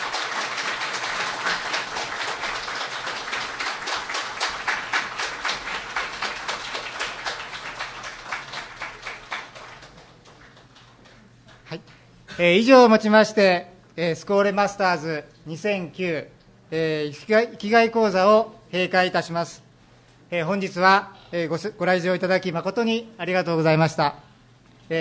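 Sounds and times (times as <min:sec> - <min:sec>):
applause: 0:00.0 - 0:12.1
speech: 0:12.4 - 0:19.6, 0:20.3 - 0:24.2.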